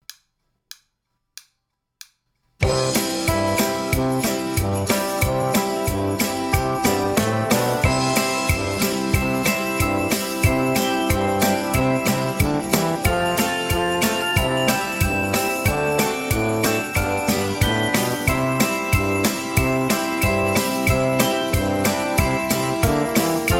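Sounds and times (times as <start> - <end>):
instrumental backing track: 2.6 - 23.5.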